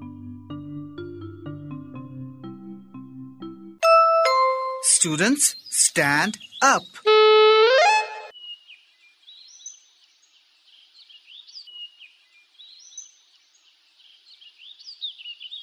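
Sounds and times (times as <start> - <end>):
speech: 4.9 - 7.1
whistle signal for stand up: 7.0 - 8.3.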